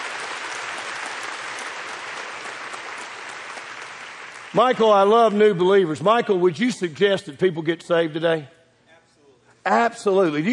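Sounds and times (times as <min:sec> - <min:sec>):
church audience clapping hands: 0:00.0 - 0:05.6
speech: 0:04.5 - 0:08.6, 0:09.6 - 0:10.5.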